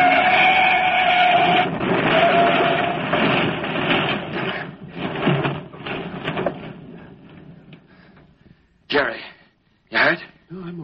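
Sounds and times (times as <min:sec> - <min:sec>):
car crash with truck and car overturning: 0:00.0 - 0:07.9.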